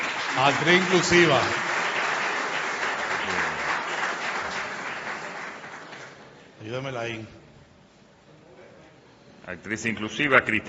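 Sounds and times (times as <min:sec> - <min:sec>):
audience applause: 0:00.0 - 0:06.3
speech: 0:00.4 - 0:01.7, 0:06.6 - 0:07.4, 0:09.5 - 0:10.6.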